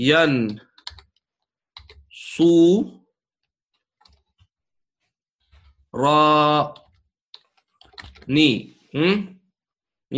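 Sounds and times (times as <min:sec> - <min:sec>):
speech: 0:00.0 - 0:00.7, 0:02.4 - 0:03.0, 0:06.0 - 0:06.8, 0:08.3 - 0:09.4
quiet computer keyboard typing: 0:00.4 - 0:02.2, 0:03.7 - 0:04.5, 0:06.7 - 0:08.3.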